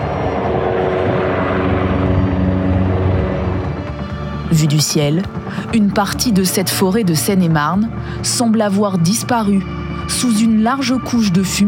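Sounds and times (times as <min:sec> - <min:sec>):
water-bombing helicopter in the gardens of the Château de Fontainebleau: 0:00.0 - 0:11.6
speech: 0:04.5 - 0:11.6.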